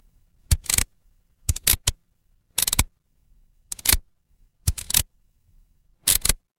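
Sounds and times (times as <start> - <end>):
mechanical lever: 0.5 - 0.9, 1.5 - 2.0, 2.6 - 2.9, 3.7 - 4.0, 4.7 - 5.1, 6.0 - 6.4.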